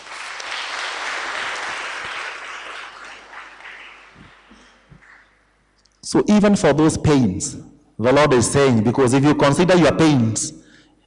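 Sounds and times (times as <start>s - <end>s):
audience clapping: 0.0s - 5.4s
speech: 6.1s - 10.6s.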